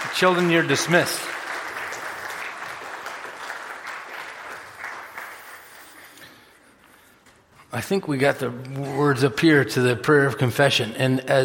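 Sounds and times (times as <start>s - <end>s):
applause from a large group: 0.0s - 6.6s
speech: 0.2s - 1.4s, 7.8s - 11.4s.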